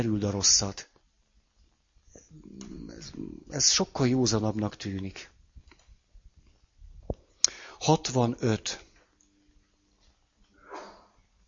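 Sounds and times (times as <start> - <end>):
speech: 0.0 - 0.9, 2.3 - 5.4, 7.8 - 8.9
hiss: 0.0 - 11.4
sneeze: 10.6 - 11.2.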